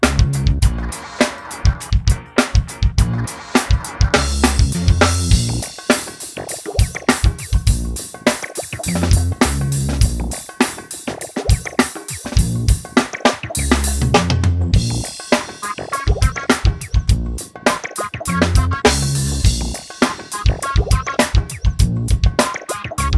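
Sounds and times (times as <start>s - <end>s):
funk drumming: 0.0s - 23.1s.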